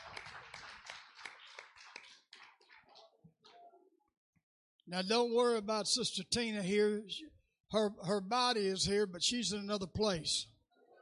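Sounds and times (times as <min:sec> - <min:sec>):
group of people clapping hands in praise: 0:00.0 - 0:03.6
speech: 0:04.9 - 0:10.5.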